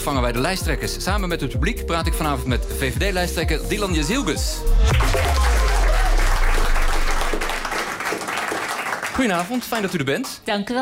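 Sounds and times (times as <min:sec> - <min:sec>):
speech: 0:00.0 - 0:05.6, 0:09.2 - 0:10.8
audience cheering: 0:04.8 - 0:09.4
audience applause in Café Fosco: 0:04.9 - 0:10.4.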